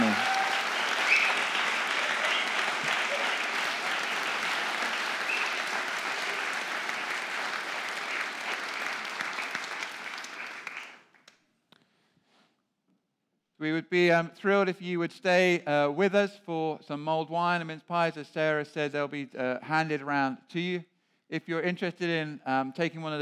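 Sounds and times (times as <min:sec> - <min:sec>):
audience applause for choir: 0:00.0 - 0:11.0
speech: 0:13.7 - 0:23.2.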